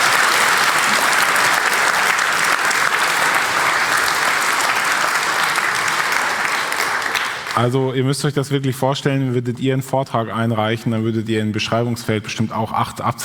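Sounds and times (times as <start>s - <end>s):
audience applause: 0.0s - 7.7s
speech: 7.6s - 13.2s.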